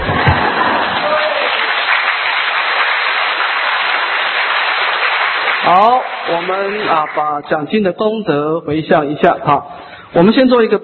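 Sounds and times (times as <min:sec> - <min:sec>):
audience applause: 0:00.0 - 0:07.4
speech: 0:05.7 - 0:10.8.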